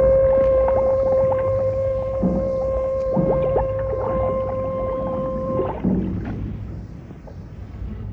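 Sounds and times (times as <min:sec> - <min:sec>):
electroacoustic music: 0:00.0 - 0:05.9.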